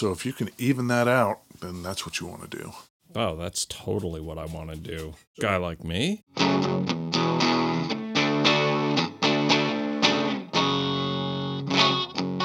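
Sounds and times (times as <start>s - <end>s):
speech: 0.0s - 7.1s
electric guitar strummed through effects to demonstrate its pickups: 6.3s - 12.4s.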